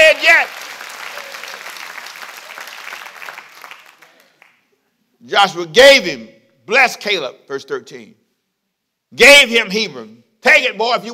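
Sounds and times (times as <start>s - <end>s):
audience clapping hands: 0.0s - 4.8s
speech: 5.4s - 8.2s, 9.1s - 11.1s.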